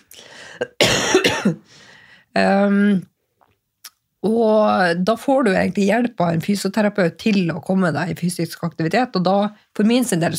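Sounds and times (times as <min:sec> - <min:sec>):
person coughing hard: 0:00.5 - 0:01.7
speech: 0:00.6 - 0:03.1, 0:04.2 - 0:10.3.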